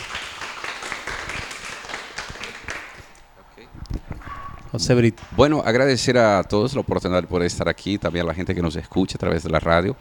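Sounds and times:
audience applause: 0:00.0 - 0:03.1
speech: 0:04.8 - 0:09.9.

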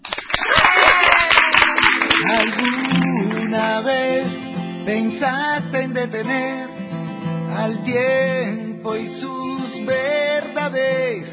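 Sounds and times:
audience applause: 0:00.0 - 0:03.5
speech: 0:04.9 - 0:06.8, 0:07.6 - 0:11.3.

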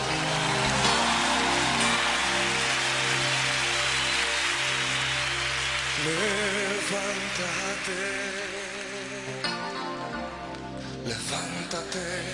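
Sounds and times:
audience applause: 0:00.0 - 0:09.6
speech: 0:06.0 - 0:08.6, 0:11.1 - 0:12.3.

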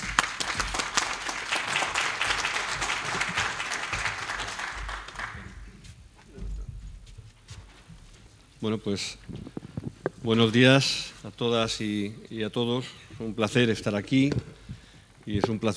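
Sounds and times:
audience applause: 0:00.0 - 0:05.6
speech: 0:08.6 - 0:09.6, 0:10.2 - 0:14.6, 0:15.3 - 0:15.7.

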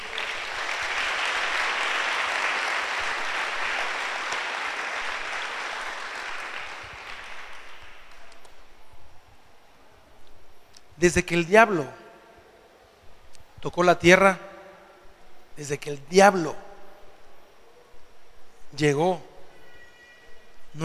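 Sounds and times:
audience applause: 0:00.0 - 0:08.4
speech: 0:11.0 - 0:12.0, 0:13.6 - 0:14.5, 0:15.6 - 0:16.6, 0:18.7 - 0:19.3.

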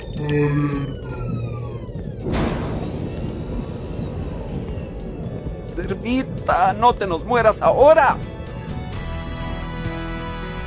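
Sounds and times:
spaceship alarm siren: 0:00.0 - 0:06.0
speech: 0:00.2 - 0:01.0, 0:06.1 - 0:08.3.

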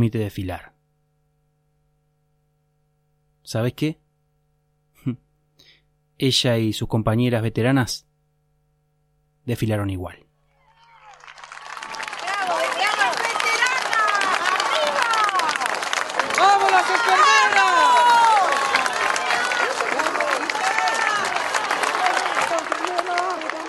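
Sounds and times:
speech: 0:00.0 - 0:00.7, 0:03.5 - 0:04.0, 0:05.0 - 0:05.2, 0:06.2 - 0:08.1, 0:09.5 - 0:10.2
crowd applauding and cheering at parade: 0:10.5 - 0:23.6.

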